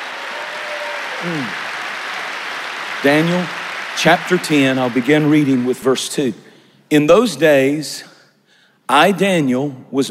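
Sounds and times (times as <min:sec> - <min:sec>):
voiced cry: 0:00.0 - 0:02.1
audience clapping: 0:00.0 - 0:06.4
speech: 0:01.2 - 0:01.6, 0:03.0 - 0:08.1, 0:08.9 - 0:10.0.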